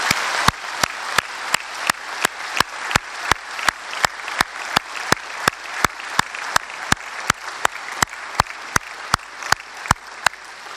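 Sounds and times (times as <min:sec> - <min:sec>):
audience applause: 0:00.0 - 0:10.7.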